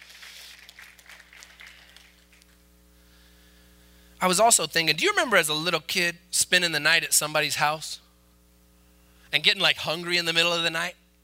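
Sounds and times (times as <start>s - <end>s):
audience clapping: 0.0s - 2.6s
low steady hum: 0.0s - 11.2s
speech: 4.2s - 8.0s, 9.3s - 11.0s.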